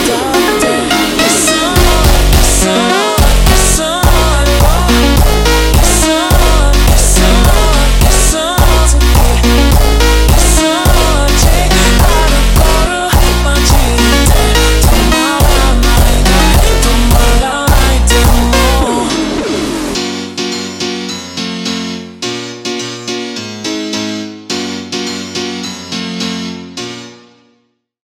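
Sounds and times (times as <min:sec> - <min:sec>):
super slowed phonk music: 0:00.0 - 0:20.5.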